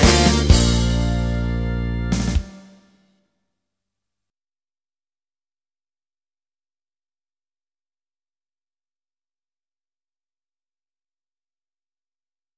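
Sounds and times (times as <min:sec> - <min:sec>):
trombone: 0:00.0 - 0:02.8
trumpet: 0:00.0 - 0:03.0.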